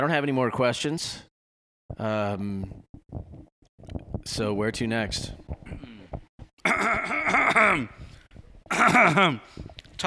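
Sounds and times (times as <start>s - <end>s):
speech: 0.0s - 1.3s, 1.9s - 3.4s, 4.2s - 5.5s, 6.6s - 8.0s, 8.7s - 10.0s
soft low grunts: 5.6s - 9.6s
man clearing his throat: 6.6s - 8.1s, 8.7s - 9.5s.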